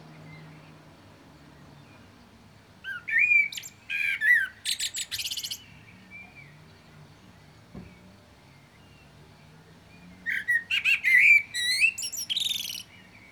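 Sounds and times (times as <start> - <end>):
common blackbird Turdus merula whistled warbling song with shrill twitters: 2.8 - 5.8, 10.3 - 13.3.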